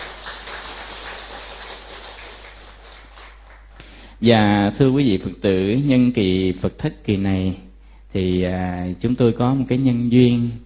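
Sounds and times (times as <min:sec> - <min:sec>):
audience applause: 0:00.0 - 0:03.8
speech: 0:04.2 - 0:10.6.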